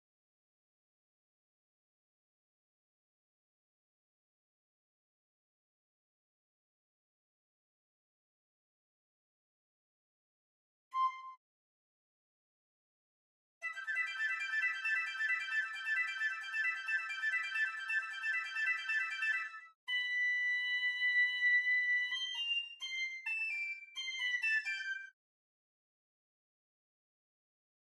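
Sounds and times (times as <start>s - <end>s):
piccolo: 10.9s - 11.4s, 13.6s - 25.2s.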